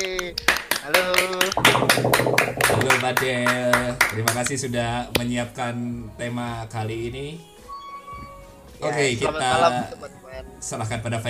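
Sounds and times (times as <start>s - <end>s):
audience clapping hands: 0.0s - 4.5s
tonal musical background: 0.0s - 11.2s
speech: 3.0s - 7.5s, 8.8s - 11.2s.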